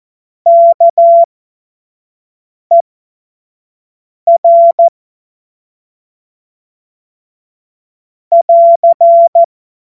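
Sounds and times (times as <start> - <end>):
CW Morse code beeps: 0.5 - 1.3, 4.3 - 4.9, 8.3 - 9.5.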